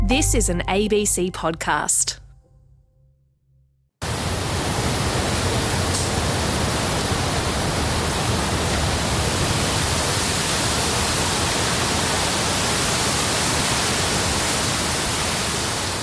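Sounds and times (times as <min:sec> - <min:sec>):
speech: 0:00.1 - 0:02.2
cyclone wind and rain: 0:04.0 - 0:16.0.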